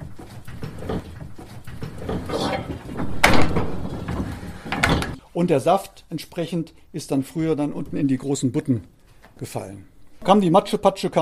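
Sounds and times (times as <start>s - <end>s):
old wine press being turned, wooden creaks and knocks: 0.0s - 5.2s
speech: 5.4s - 11.2s.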